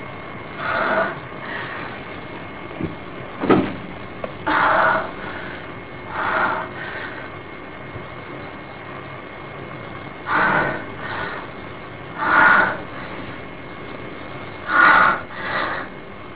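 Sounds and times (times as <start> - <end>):
masturbation: 0.1 - 7.5, 10.1 - 14.0, 14.6 - 16.1.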